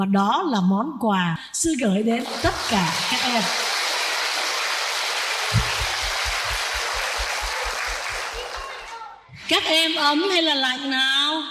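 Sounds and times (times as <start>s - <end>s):
speech: 0.0s - 3.7s, 9.5s - 11.4s
young listeners' applause at a Buddhist nun's dharma talk: 2.2s - 9.1s
regular low thumping pulse: 5.6s - 8.6s.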